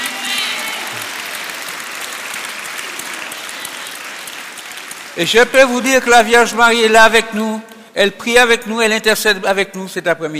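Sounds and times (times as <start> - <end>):
applause: 0.0 - 6.9
speech: 5.2 - 10.3.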